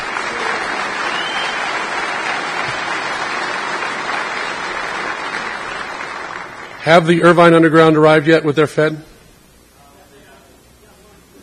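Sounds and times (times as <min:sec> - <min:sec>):
convention audience applause: 0:00.0 - 0:08.2
speech: 0:06.8 - 0:09.1.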